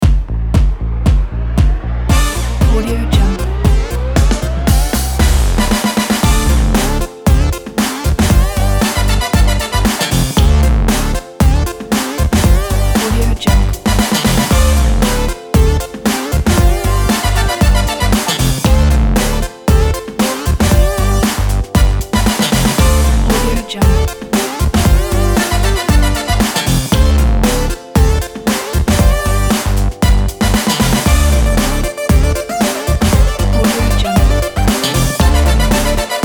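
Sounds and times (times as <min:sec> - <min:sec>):
funk music: 0:00.0 - 0:36.2.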